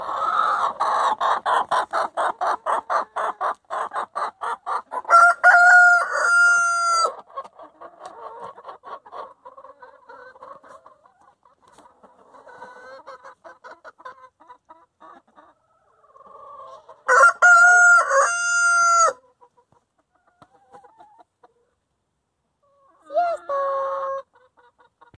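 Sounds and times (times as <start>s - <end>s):
chickens clucking: 0.0s - 25.1s
rooster crowing: 5.1s - 7.2s, 17.1s - 19.2s.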